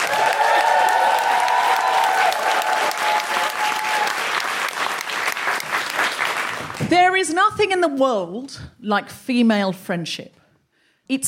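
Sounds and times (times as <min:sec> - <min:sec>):
audience clapping to welcome a speaker: 0:00.0 - 0:06.9
speech: 0:06.9 - 0:10.4, 0:11.1 - 0:11.2.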